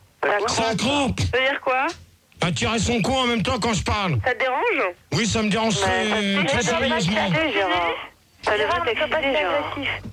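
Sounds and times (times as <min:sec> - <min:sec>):
faint low hum: 0:00.0 - 0:10.1
speech: 0:00.3 - 0:10.1.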